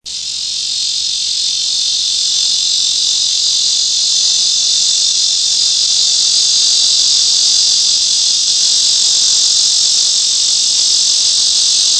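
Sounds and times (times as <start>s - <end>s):
lyric cicada giving loud high continuous buzz: 0.0s - 11.9s.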